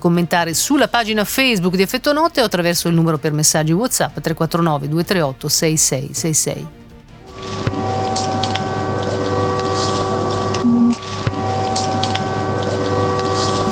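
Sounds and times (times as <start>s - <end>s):
speech: 0.0s - 6.8s
air raid alarm siren: 7.2s - 13.7s.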